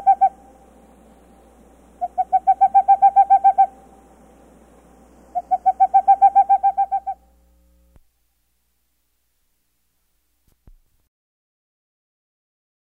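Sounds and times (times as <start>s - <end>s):
Boreal Owl calling: 0.0s - 0.6s, 2.0s - 4.0s, 5.3s - 7.3s.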